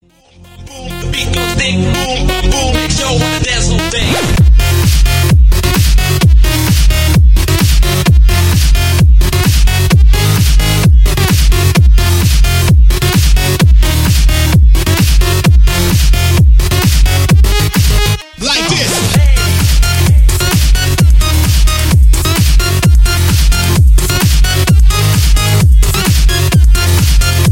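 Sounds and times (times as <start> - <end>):
electro music: 0.0 - 27.4.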